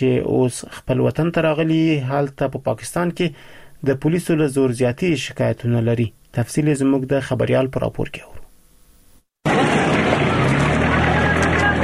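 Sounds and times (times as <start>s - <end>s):
speech: 0.0s - 8.4s
trucks and Datsun vehicles crossing the Spin Boldak border from Pakistan into Afghanistan: 9.5s - 11.8s.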